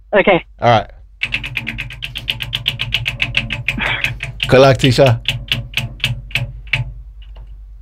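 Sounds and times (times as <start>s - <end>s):
speech: 0.1s - 1.0s, 4.5s - 5.4s
game-show prize wheel spinning with pointer rattling off pegs: 1.2s - 7.0s.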